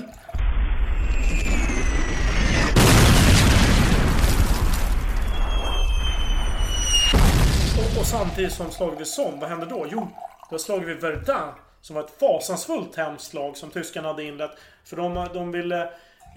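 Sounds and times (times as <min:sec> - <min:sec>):
artillery bombardment explosions: 0:00.4 - 0:08.6
speech: 0:08.1 - 0:16.3.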